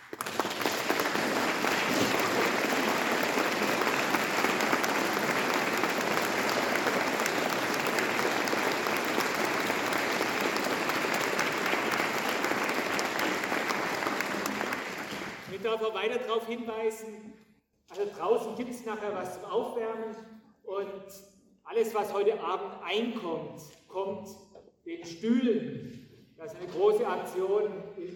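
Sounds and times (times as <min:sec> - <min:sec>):
audience applause after a concert: 0:00.0 - 0:15.6
speech: 0:15.8 - 0:17.4, 0:18.0 - 0:24.4, 0:25.0 - 0:25.9, 0:26.5 - 0:27.8.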